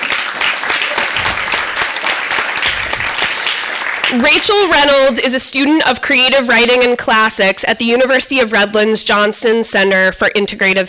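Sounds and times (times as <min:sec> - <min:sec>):
audience applause: 0:00.0 - 0:05.0
speech: 0:04.1 - 0:10.8.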